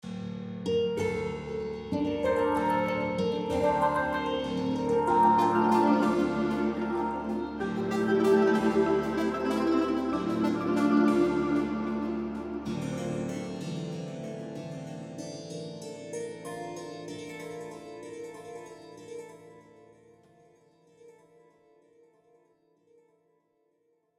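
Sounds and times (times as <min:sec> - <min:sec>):
map start background music: 0:00.7 - 0:15.4.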